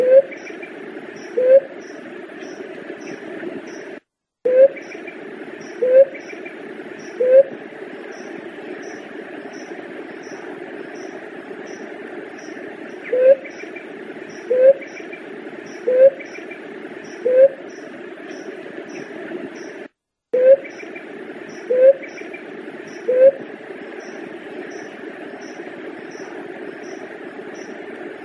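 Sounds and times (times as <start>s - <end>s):
Leptotila dove cooing: 0.0s - 0.4s, 1.2s - 1.7s, 5.8s - 6.3s, 7.2s - 7.6s, 13.0s - 13.5s, 14.5s - 14.9s, 15.8s - 16.2s, 17.2s - 17.6s, 21.7s - 22.1s, 23.0s - 23.4s.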